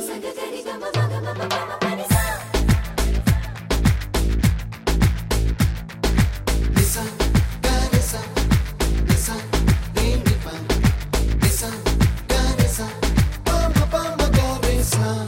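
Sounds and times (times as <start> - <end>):
Indian drum beats: 1.0 - 15.2.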